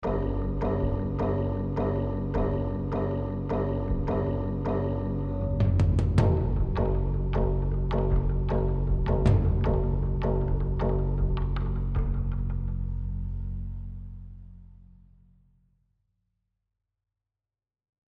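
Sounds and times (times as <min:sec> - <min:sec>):
rage combat music: 0:00.0 - 0:12.8.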